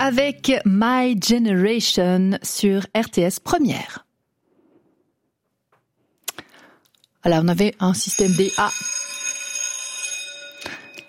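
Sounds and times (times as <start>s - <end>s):
speech: 0.0s - 4.0s, 7.2s - 9.0s
old electric primary school bell ringing: 8.0s - 11.0s.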